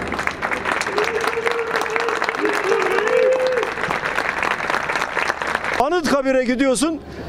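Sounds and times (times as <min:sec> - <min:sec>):
large crowd applauding at ceremony: 0:00.0 - 0:06.4
faint cheer: 0:00.5 - 0:04.1
speech: 0:06.2 - 0:07.2.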